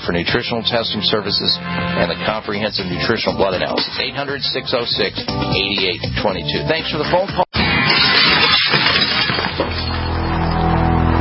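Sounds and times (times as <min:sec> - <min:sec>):
speech: 0:00.0 - 0:07.4
window glass smashed in a break-in: 0:07.6 - 0:10.5.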